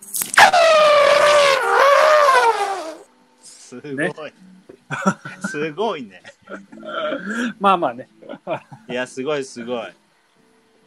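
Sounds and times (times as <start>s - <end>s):
person imitating an elephant trumpeting: 0.4s - 3.0s
speech: 3.8s - 10.0s
laughter: 4.9s - 7.4s, 8.2s - 8.9s.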